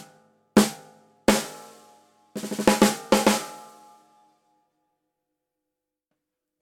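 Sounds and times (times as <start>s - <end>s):
single high drum hits: 0.6s - 3.9s.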